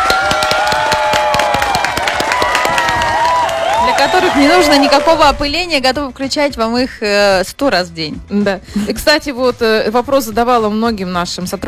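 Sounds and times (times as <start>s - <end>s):
loud applause: 0.0s - 5.5s
speech: 4.2s - 11.6s.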